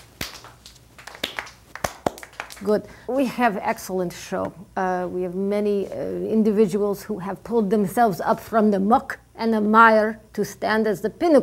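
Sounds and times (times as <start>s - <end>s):
audience applause not in unison: 0.2s - 2.6s
speech: 2.6s - 11.4s.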